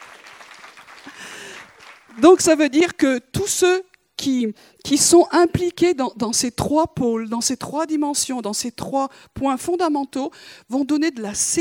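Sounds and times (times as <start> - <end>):
audience applause: 0.0 - 2.1
speech: 2.1 - 11.6.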